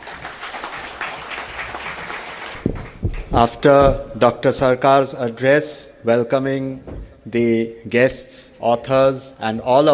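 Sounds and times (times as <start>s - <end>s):
audience applause for two scholars at an evening event in Kolkata: 0.0s - 3.5s
loud thump: 2.6s - 4.4s, 6.8s - 7.2s
speech: 3.4s - 9.9s.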